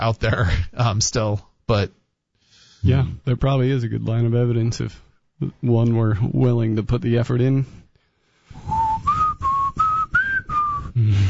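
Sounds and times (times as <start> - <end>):
speech: 0.0 - 2.0, 2.8 - 7.8, 11.0 - 11.2
person whistling a TV theme tune: 8.6 - 11.2.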